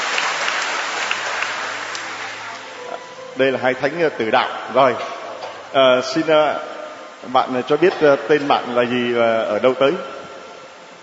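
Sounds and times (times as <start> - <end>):
audience applause: 0.0 - 2.8
speech: 3.4 - 5.1, 5.7 - 10.1.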